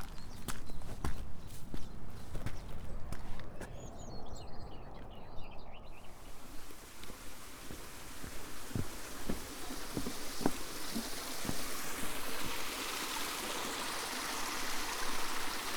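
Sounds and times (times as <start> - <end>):
footsteps crunching on the South West Coast Path: 0.0 - 4.0, 6.3 - 12.6
quick bird chirps: 0.0 - 15.7.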